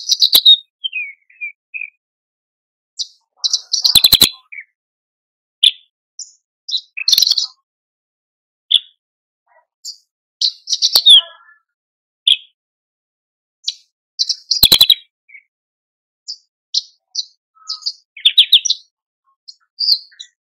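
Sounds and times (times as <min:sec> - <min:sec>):
Horsfield's bush lark song: 0:00.0 - 0:02.0, 0:03.0 - 0:04.8, 0:05.6 - 0:07.7, 0:08.7 - 0:12.6, 0:13.6 - 0:15.5, 0:16.3 - 0:20.4.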